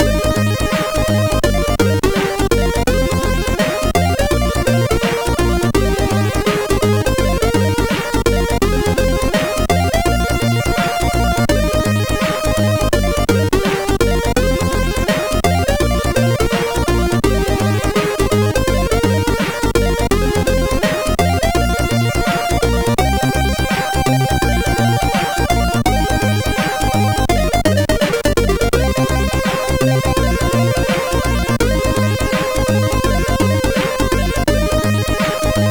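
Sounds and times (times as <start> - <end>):
MOS6581R4 SID chip intro music: 0.0 - 35.6.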